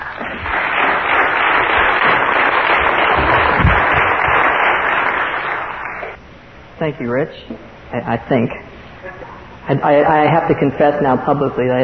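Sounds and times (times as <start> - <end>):
audience applause welcoming a speaker: 0.0 - 6.2
speech: 6.8 - 8.6, 9.7 - 11.8.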